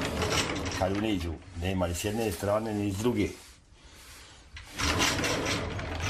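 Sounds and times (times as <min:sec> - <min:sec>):
wooden sliding door sliding into its wall pocket: 0:00.0 - 0:01.4, 0:04.6 - 0:06.0
speech: 0:00.8 - 0:03.4.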